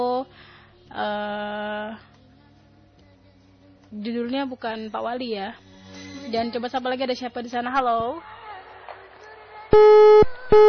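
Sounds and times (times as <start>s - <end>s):
speech: 0.9s - 1.4s, 4.0s - 5.7s, 6.3s - 8.3s, 9.7s - 10.6s
telephone disconnected tone after a dropped call: 9.8s - 10.6s.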